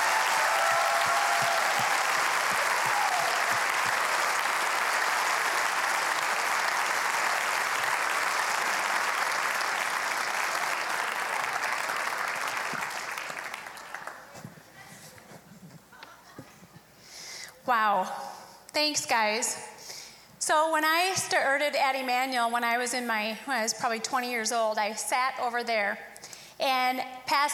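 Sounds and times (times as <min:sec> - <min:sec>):
audience applause at a church gathering: 0:00.0 - 0:14.5
speech: 0:17.7 - 0:18.2, 0:18.8 - 0:19.7, 0:20.5 - 0:27.5.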